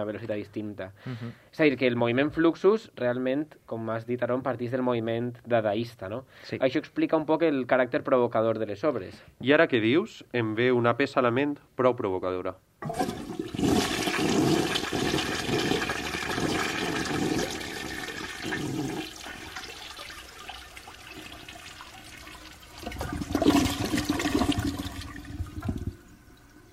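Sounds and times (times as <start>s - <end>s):
speech: 0.0s - 13.4s
toilet flushing: 12.8s - 26.7s.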